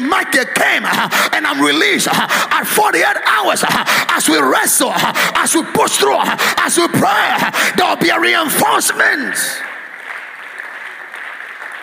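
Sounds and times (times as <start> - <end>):
speech: 0.1 - 9.8
crowd applauding: 4.6 - 11.8.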